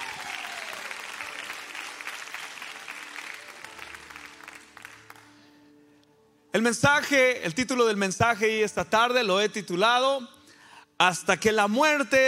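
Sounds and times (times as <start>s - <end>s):
audience applause: 0.0s - 5.3s
speech: 6.6s - 10.4s, 11.0s - 12.2s.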